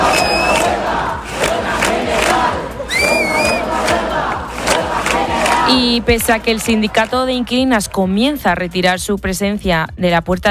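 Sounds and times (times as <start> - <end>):
high whistles: 0.0 - 0.7, 2.9 - 3.7
protest crowd chanting and shouting at a demonstration: 0.0 - 9.0
speech: 5.7 - 10.4.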